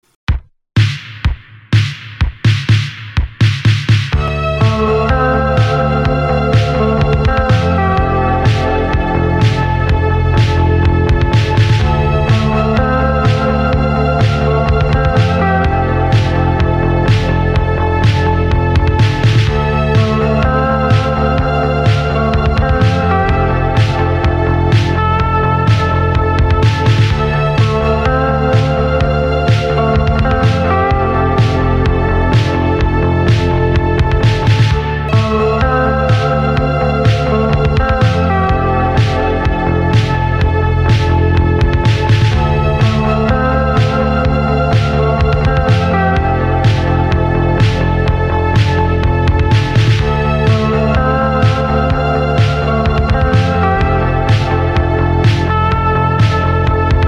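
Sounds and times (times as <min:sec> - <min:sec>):
slowed instrumental music: 0:00.8 - 0:57.0.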